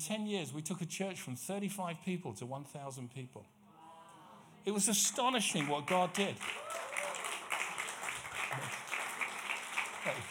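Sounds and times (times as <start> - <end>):
speech: 0.0 - 3.6, 4.6 - 6.9, 8.5 - 8.8, 10.0 - 10.3
single person clapping: 5.6 - 10.3.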